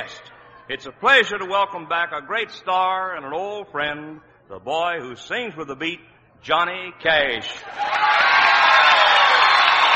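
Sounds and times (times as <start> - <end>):
speech: 0.0 - 8.3
audience at the Grand Ole Opry cheering and applauding: 7.6 - 9.9.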